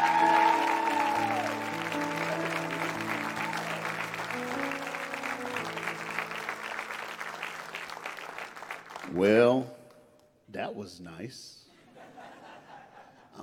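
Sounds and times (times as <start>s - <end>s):
audience applause: 0.0s - 9.3s
speech: 9.2s - 9.8s, 10.7s - 11.6s
laughter: 11.7s - 13.4s.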